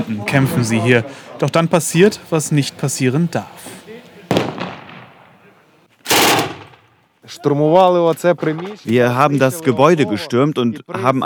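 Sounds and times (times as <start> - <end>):
speech: 0.0 - 3.8, 7.4 - 11.2
gunshots from blank cartridges: 6.1 - 6.9.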